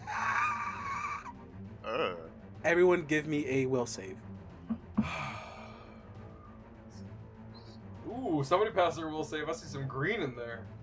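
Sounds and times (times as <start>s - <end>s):
person imitating a creature's screech: 0.0s - 1.3s
speech: 2.6s - 4.3s, 8.4s - 10.8s.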